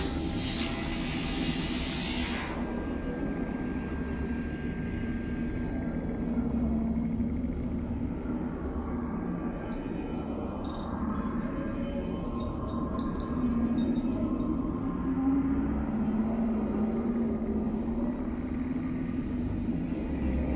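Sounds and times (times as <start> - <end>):
alien bioship control room ambience: 0.0 - 20.5.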